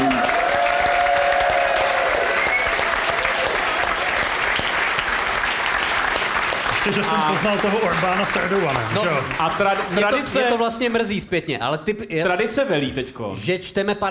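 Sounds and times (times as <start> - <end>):
audience applause: 0.0 - 11.2
whistle-like tone: 2.4 - 2.8
speech: 6.9 - 14.0.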